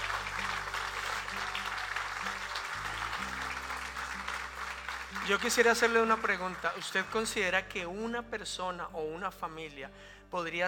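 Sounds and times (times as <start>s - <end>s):
church congregation clapping for the Lord: 0.0s - 7.6s
speech: 5.3s - 10.6s.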